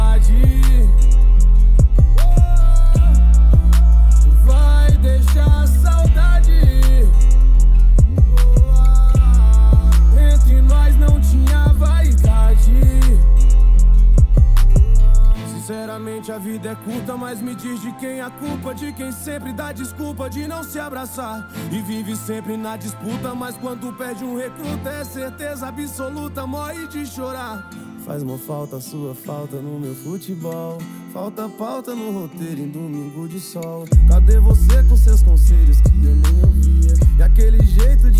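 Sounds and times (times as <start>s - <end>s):
deep hip hop bass: 0.0s - 17.8s, 33.9s - 38.1s.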